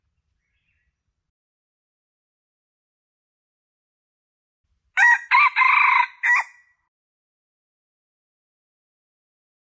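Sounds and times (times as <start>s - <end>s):
Red junglefowl crowing: 5.0s - 6.6s.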